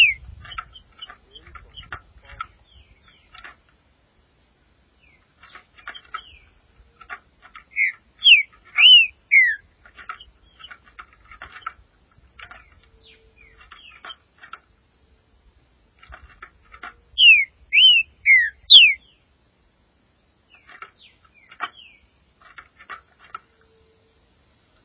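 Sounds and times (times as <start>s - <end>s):
Green-winged saltator slurred whistles: 7.7s - 9.6s, 17.2s - 19.0s.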